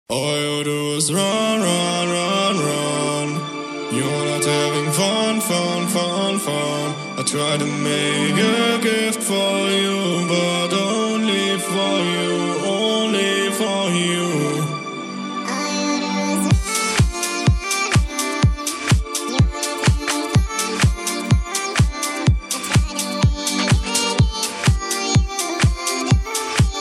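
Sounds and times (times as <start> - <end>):
chill disco music: 1.1 - 26.7.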